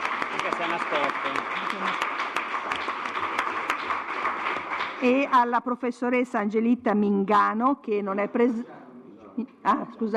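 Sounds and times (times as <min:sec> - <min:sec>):
audience applause: 0:00.0 - 0:05.3
speech: 0:00.7 - 0:02.2, 0:05.0 - 0:08.8, 0:09.4 - 0:10.1.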